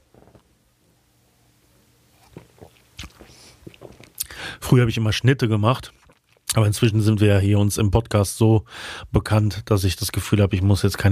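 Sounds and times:
sip of a drink: 2.1 - 4.6, 5.7 - 6.9
speech: 4.7 - 6.0, 6.6 - 11.1.

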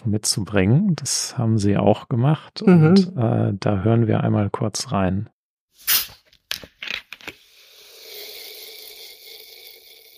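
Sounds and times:
speech: 0.0 - 6.0
sparkling water bottle being opened: 5.8 - 7.5.

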